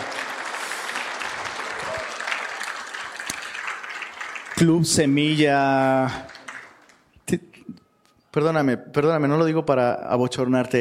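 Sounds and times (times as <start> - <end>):
audience applause: 0.0 - 7.0
speech: 4.6 - 6.3, 8.4 - 10.7.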